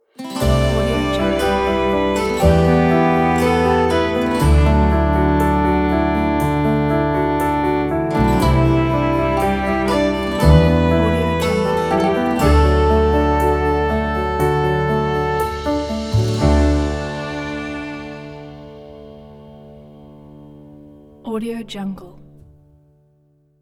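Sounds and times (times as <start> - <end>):
celtic romantic ident: 0.2 - 20.4.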